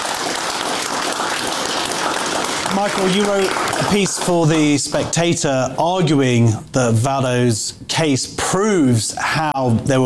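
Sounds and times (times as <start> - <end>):
studio audience applause welcoming a guest: 0.0 - 4.9
speech: 2.8 - 10.0.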